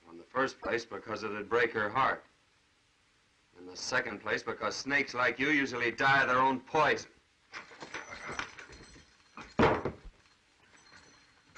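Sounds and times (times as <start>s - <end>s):
speech: 0.4s - 2.3s, 3.6s - 7.7s
gun dropped on the floor: 7.6s - 10.4s.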